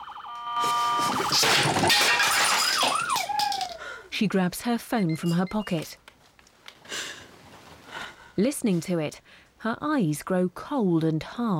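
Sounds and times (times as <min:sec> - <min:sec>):
toy knocked onto the floor: 0:01.0 - 0:03.8
speech: 0:01.3 - 0:02.3, 0:04.2 - 0:06.0, 0:08.4 - 0:11.5.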